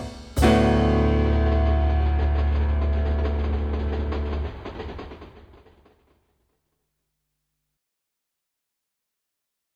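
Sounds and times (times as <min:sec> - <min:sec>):
rhythmic beat: 0:00.0 - 0:05.8.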